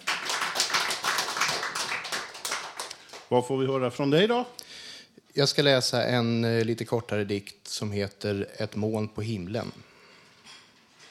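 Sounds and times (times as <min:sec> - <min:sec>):
audience applause: 0:00.0 - 0:03.3
speech: 0:03.3 - 0:04.6, 0:05.3 - 0:09.9.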